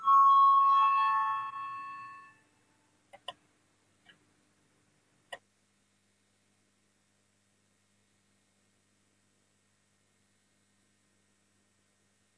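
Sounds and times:
parliament voting bell ringing: 0:00.0 - 0:02.4.

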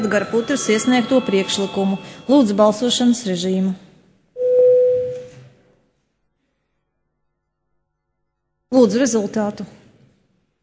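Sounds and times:
parliament bell ringing before vote: 0:00.0 - 0:03.6
speech: 0:00.0 - 0:03.8, 0:08.7 - 0:09.8.

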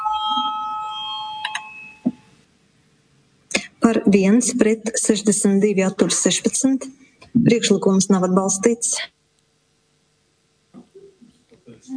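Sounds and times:
parliament voting bell ringing: 0:00.0 - 0:02.3
speech: 0:03.9 - 0:09.2.

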